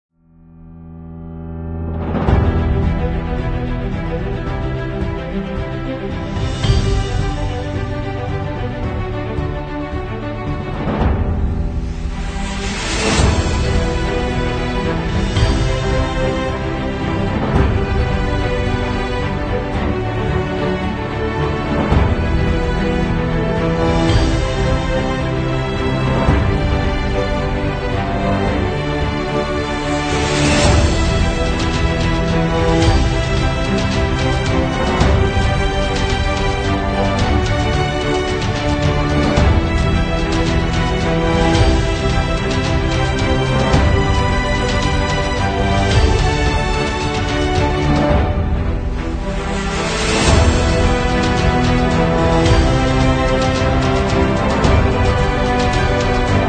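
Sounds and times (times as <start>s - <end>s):
epic music: 0.4s - 56.4s.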